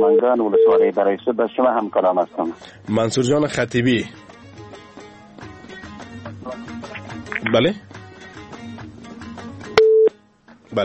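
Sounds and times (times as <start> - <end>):
telephone tone after a caller's line drops during a phone-in: 0.0 - 0.9, 9.8 - 10.1
speech: 0.0 - 4.3, 7.5 - 7.9.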